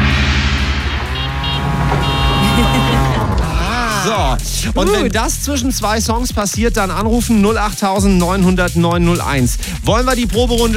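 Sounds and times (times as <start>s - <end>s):
tuk-tuk auto rickshaw engine droning with a buzzy harmonic whine: 0.6s - 4.0s
laughter: 2.3s - 5.2s
speech: 4.1s - 10.7s.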